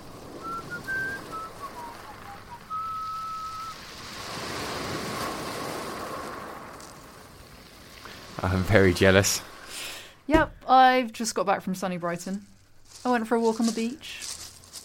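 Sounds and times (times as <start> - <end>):
seaside waves: 0.0 - 11.0
seaside wind: 0.0 - 14.8
thin high whistling tones: 0.3 - 3.9
speech: 8.4 - 9.5, 10.3 - 14.3.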